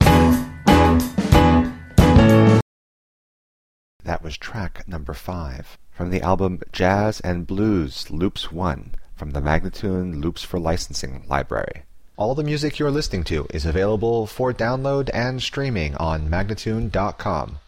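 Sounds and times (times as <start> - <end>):
jazz and blues loops: 0.0 - 2.6
person speaking: 4.0 - 17.6.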